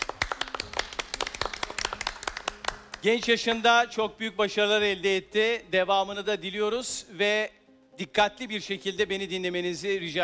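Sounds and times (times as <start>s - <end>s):
scattered applause from a small group of contestants: 0.0s - 3.1s
speech: 3.0s - 10.2s.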